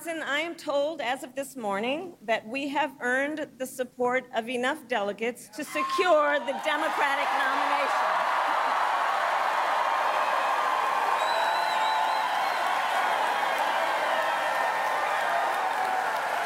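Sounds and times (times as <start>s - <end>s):
speech: 0.0s - 8.2s
rally crowd cheering and applauding: 6.4s - 16.4s.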